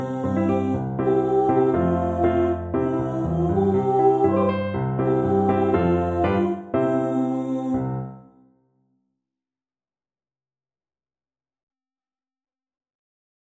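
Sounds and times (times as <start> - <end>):
piano accompaniment: 0.0 - 8.4.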